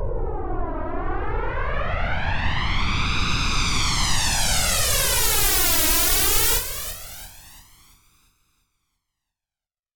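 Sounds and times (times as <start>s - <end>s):
delayed pink noise: 0.1s - 7.9s.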